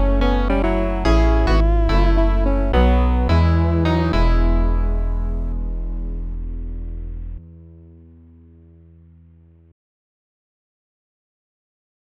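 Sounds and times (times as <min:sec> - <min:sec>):
blues music: 0:00.0 - 0:08.6.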